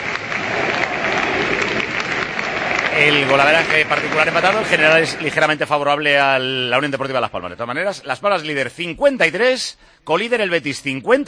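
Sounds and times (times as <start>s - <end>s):
nearly 27,000 spectators at El Molinón applauding their team after a football match: 0.0s - 7.2s
speech: 3.0s - 11.2s.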